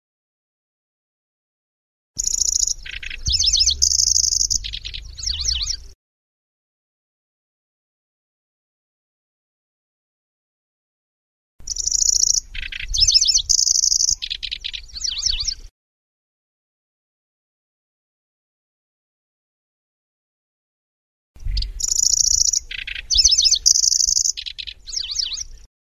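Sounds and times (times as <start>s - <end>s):
Grasshopper warbler song: 2.2s - 6.0s, 11.6s - 15.7s, 21.4s - 25.7s.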